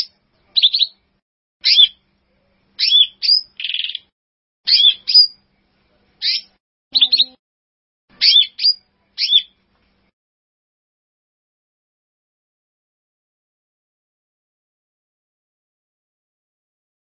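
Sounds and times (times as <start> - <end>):
bird song: 0.0 - 4.1, 4.7 - 7.4, 8.1 - 9.7.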